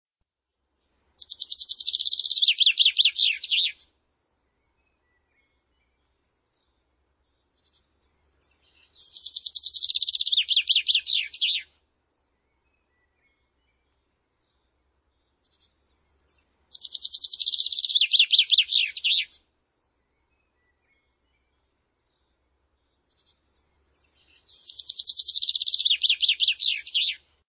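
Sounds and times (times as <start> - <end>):
bird song trill: 1.2 - 3.8, 9.1 - 11.6, 16.7 - 19.3, 24.6 - 27.2.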